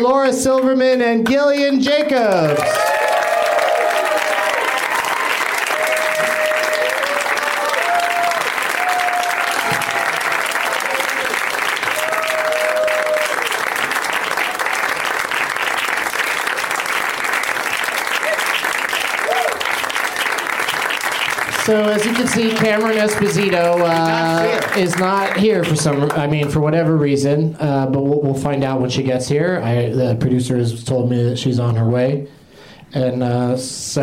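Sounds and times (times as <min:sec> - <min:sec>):
speech: 0:00.0 - 0:03.0, 0:21.7 - 0:34.0
audience applause at a live comedy stage: 0:02.4 - 0:26.6
whoops and cheers: 0:02.5 - 0:13.6, 0:18.2 - 0:19.7.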